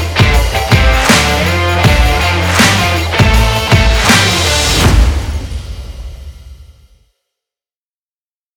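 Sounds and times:
action stomp rock trailer drum kit: 0.0 - 6.4.

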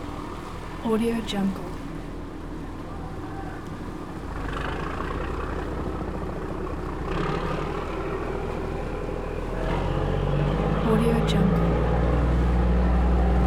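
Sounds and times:
harbor ambience: 0.0 - 13.4
deep engine revving in a harbor: 4.2 - 13.4.

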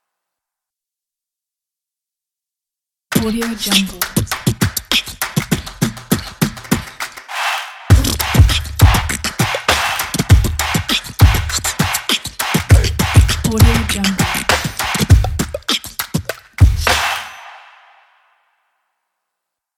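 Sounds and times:
beatbox kit sounds: 3.1 - 17.4.

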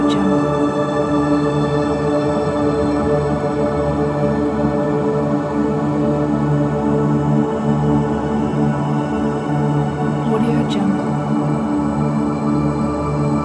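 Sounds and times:
peaceful ambient background: 0.0 - 13.4.

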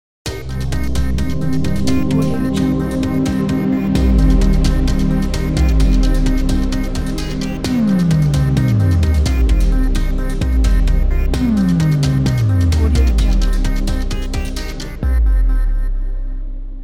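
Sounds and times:
spatial voice logo: 0.3 - 16.8.

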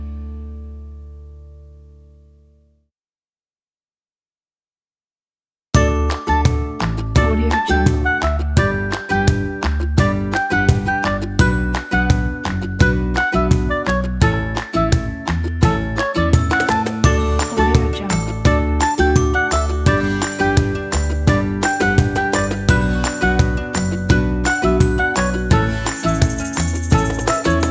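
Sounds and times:
happy upbeat ukulele music: 5.8 - 27.6.

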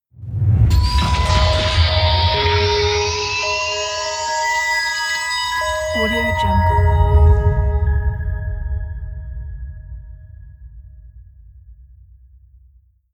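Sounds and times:
mystical secret logo sting: 0.3 - 10.3.

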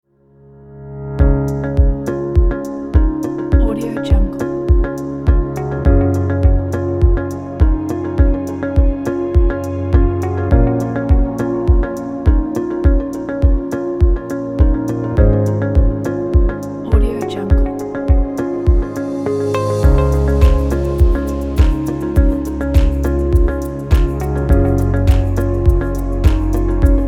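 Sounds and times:
ambient music: 0.4 - 27.0.

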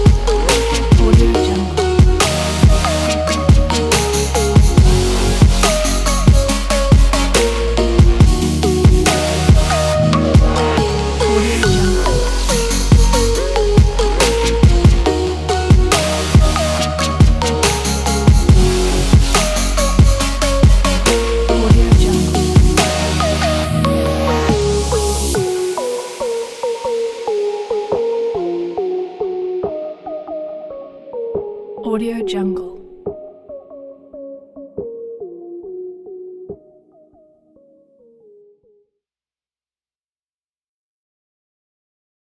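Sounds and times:
future bass music: 0.0 - 28.9.

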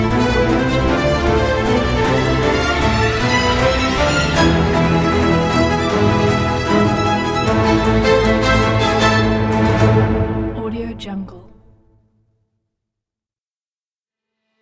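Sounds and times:
classic violins: 0.0 - 10.9.

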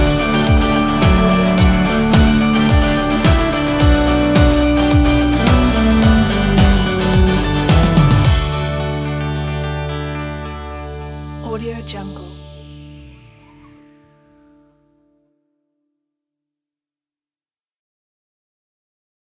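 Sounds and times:
upbeat pop rock guitars: 0.0 - 11.6.

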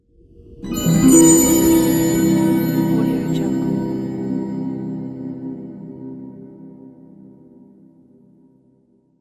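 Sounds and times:
magic sound: 0.8 - 4.5.

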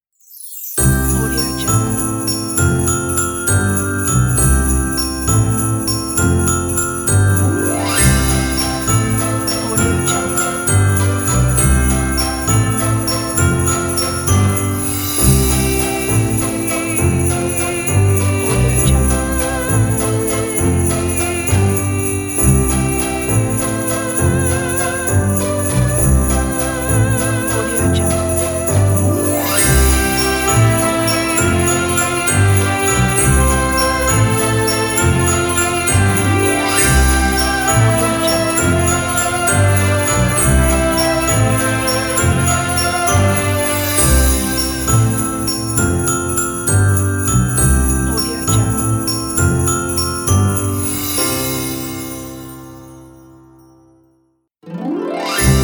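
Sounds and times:
Christmas music kit: 0.0 - 55.6.

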